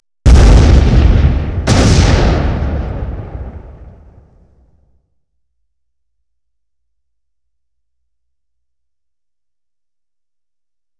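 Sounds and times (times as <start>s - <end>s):
explosion: 0.3s - 5.0s.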